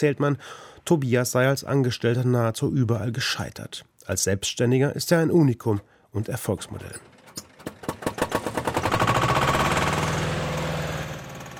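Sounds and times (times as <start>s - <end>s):
speech: 0.0s - 7.2s
old diesel tractor engine starting and idling: 6.9s - 11.5s.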